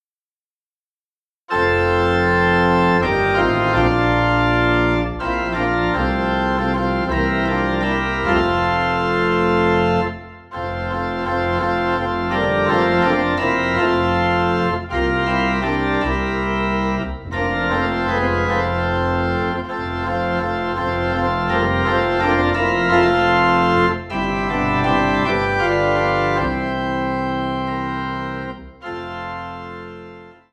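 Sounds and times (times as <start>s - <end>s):
low organ tone in F: 1.5s - 30.5s.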